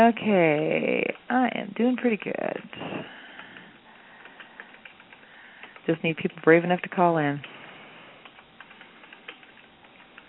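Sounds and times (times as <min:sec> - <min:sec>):
speech: 0:00.0 - 0:03.2, 0:05.8 - 0:07.6
typing on a computer keyboard: 0:03.2 - 0:07.5, 0:08.2 - 0:10.2.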